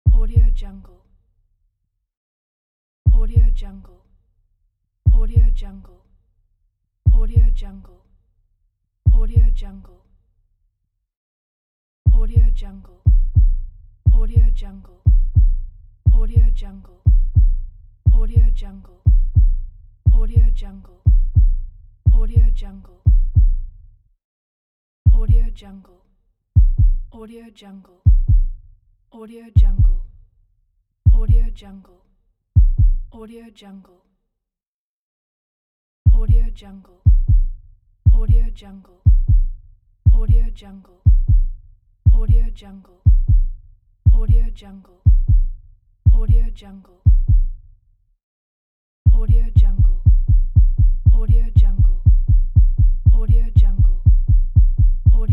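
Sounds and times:
heartbeat: 0.1 - 0.7, 3.1 - 3.7, 5.1 - 5.7, 7.1 - 7.7, 9.1 - 9.7, 12.1 - 23.9, 25.1 - 25.5, 26.6 - 27.2, 28.1 - 28.6, 29.6 - 30.1, 31.1 - 31.5, 32.6 - 33.2, 36.1 - 36.5, 37.1 - 38.5, 39.1 - 40.5, 41.1 - 42.5, 43.1 - 44.5, 45.1 - 46.5, 47.1 - 47.6, 49.1 - 55.3.

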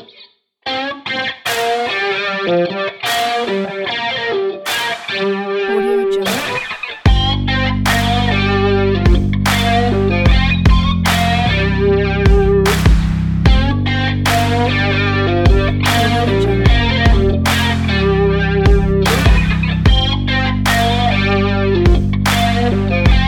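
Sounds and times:
sexy rock beat: 0.7 - 23.2.

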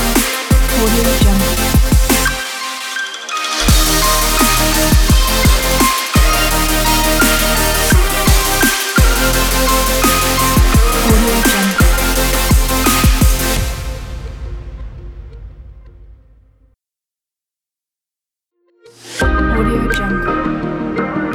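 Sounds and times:
inspiring future bass music: 0.0 - 14.1, 19.2 - 21.3.

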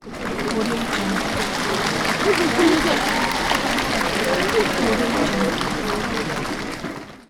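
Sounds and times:
applause: 0.0 - 7.2
laughter: 0.3 - 6.6.

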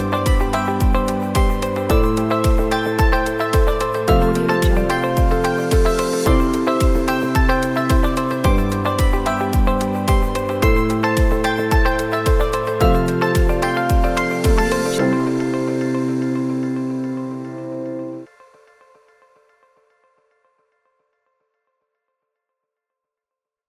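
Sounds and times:
light ambient corporate music: 0.0 - 18.8.

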